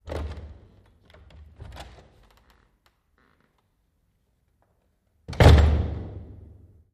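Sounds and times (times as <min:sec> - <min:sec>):
door opening and closing: 0:00.0 - 0:03.6, 0:05.3 - 0:06.2.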